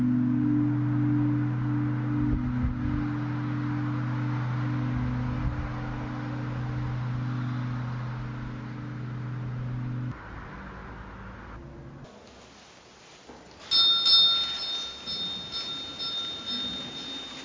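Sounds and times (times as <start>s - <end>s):
pilgrimage church bells ringing in Biberbach near Augsburg in Bavarian Swabia: 0.0s - 10.1s, 13.6s - 17.4s.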